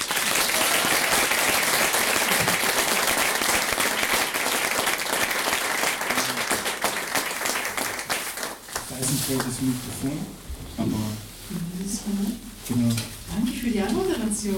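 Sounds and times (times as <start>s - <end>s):
crowd applause: 0.0s - 8.8s
speech: 9.3s - 14.5s.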